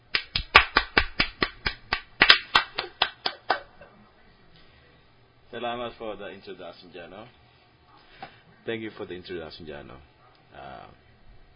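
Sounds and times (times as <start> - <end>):
audience applause of crisp claps: 0.0 - 3.8
speech: 5.5 - 7.4, 8.2 - 11.0.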